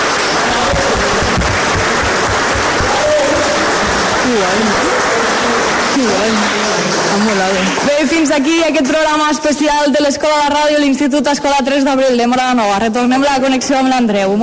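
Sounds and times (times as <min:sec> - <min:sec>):
audience applause: 0:00.0 - 0:09.1
speech: 0:07.4 - 0:14.4.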